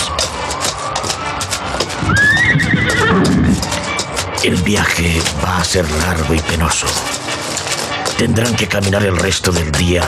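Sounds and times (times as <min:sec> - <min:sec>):
riders' horses walking slowly away from a valley: 0:00.0 - 0:10.0
horse neighing loudly: 0:02.0 - 0:04.0
speech: 0:04.4 - 0:07.2, 0:08.2 - 0:10.0.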